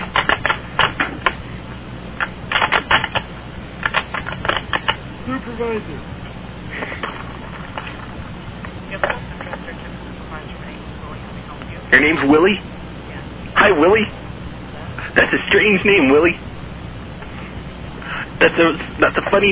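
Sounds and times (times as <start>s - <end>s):
low hum: 0.0s - 19.4s
typing on a keyboard: 0.1s - 0.9s, 2.5s - 3.2s
speech: 5.5s - 6.2s, 12.0s - 12.7s, 13.8s - 14.2s, 15.2s - 16.4s, 18.4s - 19.4s.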